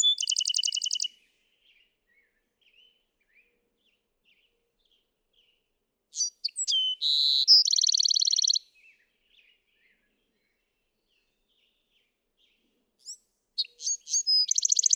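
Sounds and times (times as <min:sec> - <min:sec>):
Bewick's wren song of chips and a fast trill: 0:00.0 - 0:01.1, 0:06.1 - 0:08.7, 0:13.0 - 0:14.9.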